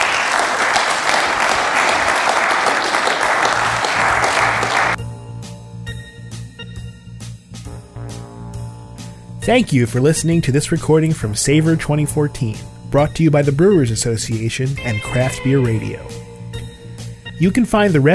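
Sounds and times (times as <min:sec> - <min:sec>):
audience applause for panelists: 0:00.0 - 0:05.0
speech: 0:09.5 - 0:16.3, 0:17.4 - 0:18.1.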